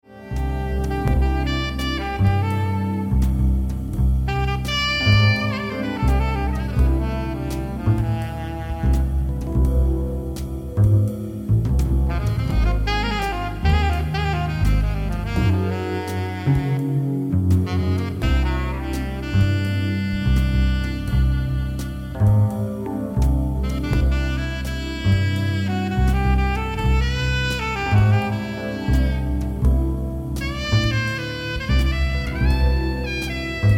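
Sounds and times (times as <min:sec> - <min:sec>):
alto singing: 0:00.0 - 0:33.7.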